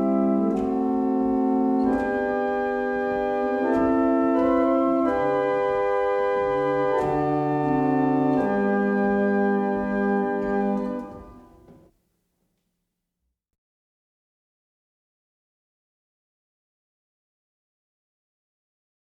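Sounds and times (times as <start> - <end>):
hymn played on barrel organs: 0.0 - 11.9.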